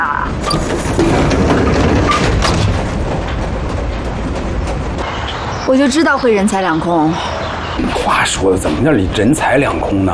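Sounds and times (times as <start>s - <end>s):
train running: 0.0s - 10.1s
speech: 5.7s - 10.1s.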